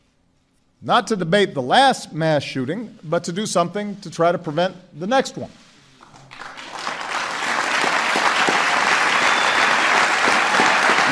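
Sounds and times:
speech: 0.8 - 5.6
audience applauding wildly: 6.0 - 11.1.

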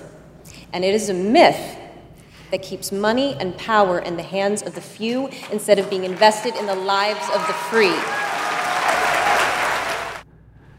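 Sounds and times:
speech: 0.7 - 1.8, 2.5 - 8.2
raucous applause at a speech: 4.7 - 10.2.

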